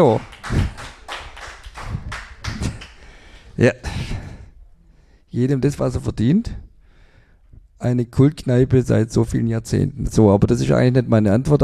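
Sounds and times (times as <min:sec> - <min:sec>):
speech: 0:00.0 - 0:00.7, 0:03.6 - 0:04.2, 0:05.3 - 0:06.6, 0:07.8 - 0:11.6
small group clapping in a long-established pub: 0:00.0 - 0:03.2.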